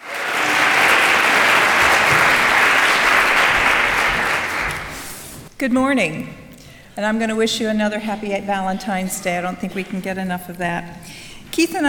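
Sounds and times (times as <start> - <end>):
audience applause at a chapel gathering: 0.0 - 5.2
speech: 5.6 - 6.4, 7.0 - 11.8.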